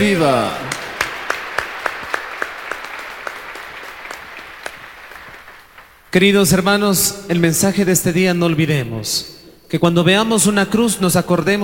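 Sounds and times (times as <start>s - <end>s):
speech: 0.0s - 0.7s, 6.1s - 11.6s
audience applause: 0.0s - 6.1s.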